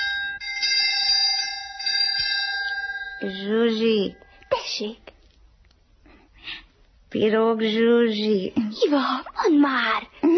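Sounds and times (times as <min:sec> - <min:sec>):
school bell ringing end of break: 0:00.0 - 0:05.0
speech: 0:03.2 - 0:05.1, 0:07.1 - 0:10.3.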